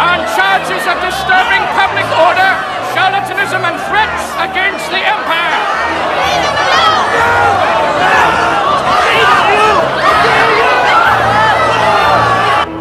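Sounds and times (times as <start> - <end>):
crowd surging into a theatre roaring and shouting: 0.0 - 12.7.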